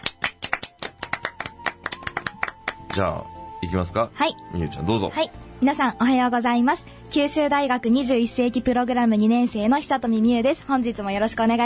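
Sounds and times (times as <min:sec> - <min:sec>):
hands clapping at a Kyushu University student program meeting: 0:00.0 - 0:03.3
speech: 0:02.9 - 0:11.6.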